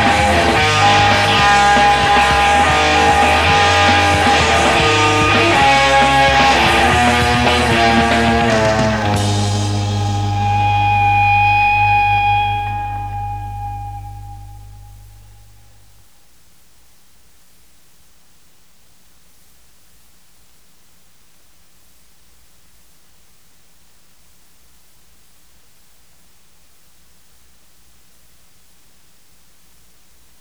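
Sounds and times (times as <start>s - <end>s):
instrumental music: 0.0s - 15.8s.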